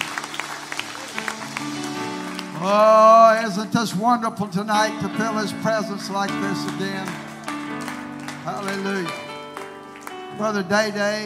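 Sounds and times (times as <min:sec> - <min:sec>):
audience applause: 0:00.0 - 0:03.7, 0:06.0 - 0:11.0
speech: 0:02.6 - 0:07.3, 0:08.4 - 0:09.2, 0:10.4 - 0:11.2.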